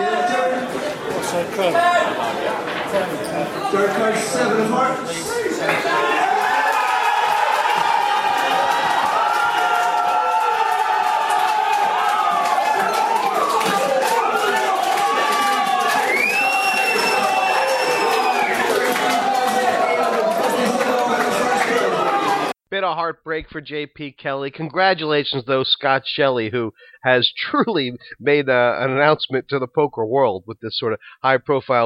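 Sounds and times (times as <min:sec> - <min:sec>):
crowd cheering and shouting at a live poker tournament: 0:00.0 - 0:02.7, 0:03.6 - 0:22.6
speech: 0:01.4 - 0:06.1, 0:22.8 - 0:31.8.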